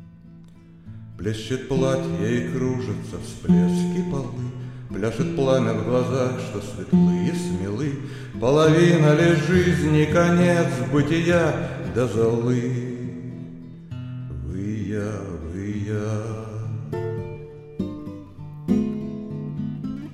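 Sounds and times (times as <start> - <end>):
waltz song with vocals: 1.2 - 13.6, 14.3 - 17.4.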